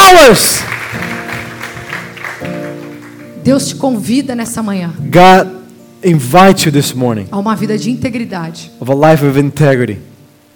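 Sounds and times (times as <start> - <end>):
audience clapping hands: 0.0 - 3.4
sustained keyboard chords: 0.0 - 9.0
speech: 0.2 - 0.8, 3.4 - 10.1.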